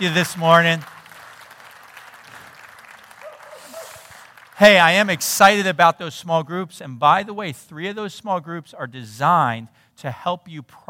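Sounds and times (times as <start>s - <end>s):
speech: 0.0s - 1.0s, 4.6s - 10.8s
audience applause: 0.0s - 5.3s.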